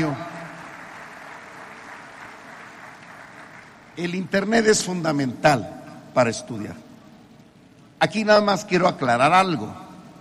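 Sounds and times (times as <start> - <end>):
speech: 0.0 - 0.3, 4.0 - 6.8, 8.0 - 9.8
audience applause: 0.0 - 4.0.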